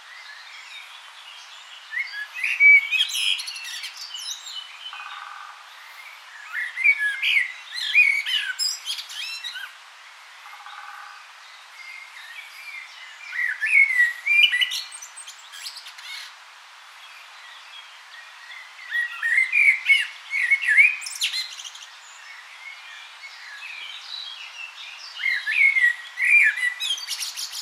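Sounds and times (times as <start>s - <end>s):
common blackbird singing: 1.9s - 5.3s, 5.9s - 9.7s, 11.9s - 16.3s, 18.5s - 24.4s, 25.0s - 27.6s.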